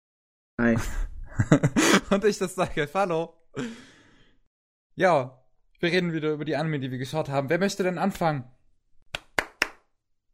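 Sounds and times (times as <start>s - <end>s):
speech: 0.6s - 3.9s, 5.0s - 8.6s
laughter: 0.7s - 2.4s
hand clapping: 9.1s - 9.9s.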